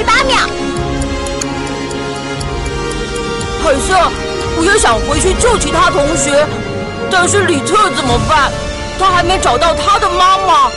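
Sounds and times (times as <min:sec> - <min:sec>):
clock ticking as it is set back: 0:00.0 - 0:06.4
speech: 0:03.7 - 0:10.7.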